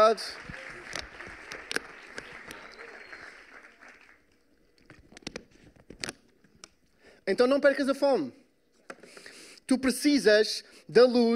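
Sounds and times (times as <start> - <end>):
audience applause: 0.0 - 4.5
speech: 0.1 - 0.6, 7.3 - 8.4, 9.7 - 11.3.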